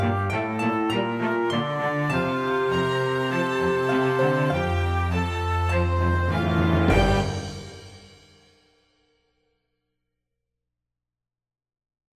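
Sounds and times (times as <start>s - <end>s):
victory music: 0.0s - 8.5s.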